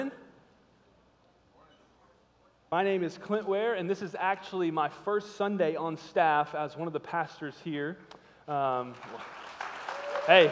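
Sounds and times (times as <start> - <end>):
speech: 2.7 - 9.4, 10.3 - 10.4
audience applause: 8.7 - 10.4.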